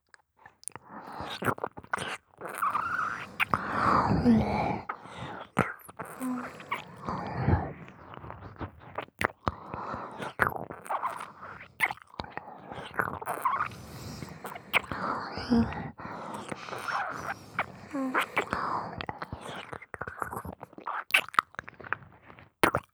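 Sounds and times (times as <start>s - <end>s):
ear licking: 0.6s - 22.0s.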